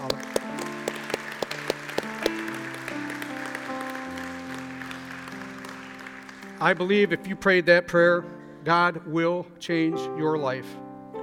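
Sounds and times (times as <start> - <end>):
sustained keyboard chords: 0.0 - 4.5
audience hand claps: 0.0 - 7.0
speech: 6.6 - 10.8.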